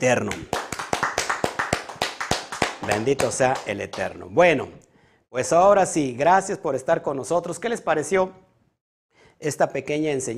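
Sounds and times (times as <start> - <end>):
speech: 0.0 - 0.6, 2.9 - 8.4, 9.4 - 10.3
audience clapping: 0.1 - 4.3.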